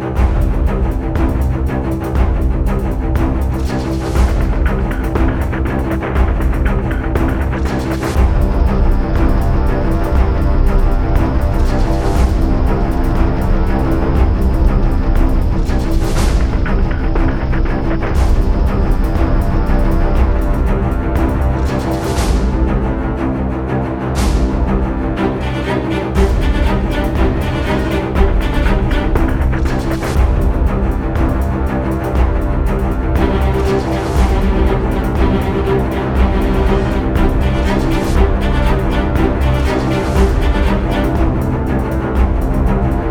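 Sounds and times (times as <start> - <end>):
120 bpm music loop: 0.2 - 23.3, 24.2 - 43.0.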